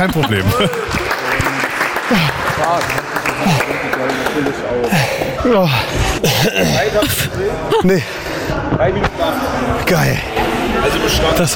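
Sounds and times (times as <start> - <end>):
speech: 0.0 - 1.0, 2.1 - 11.5
police cadets applauding: 0.0 - 5.3
laughter: 0.0 - 8.2.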